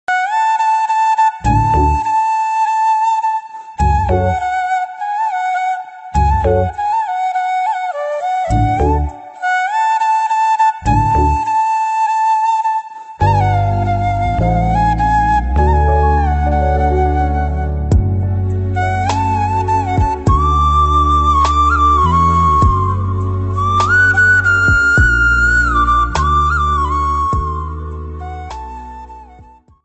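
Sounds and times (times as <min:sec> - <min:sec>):
flute background music: 0:00.1 - 0:29.8.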